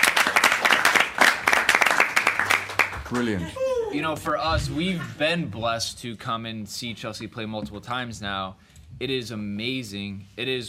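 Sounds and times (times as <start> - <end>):
round of applause from a group of fans: 0.0 - 3.4
speech: 3.1 - 10.6.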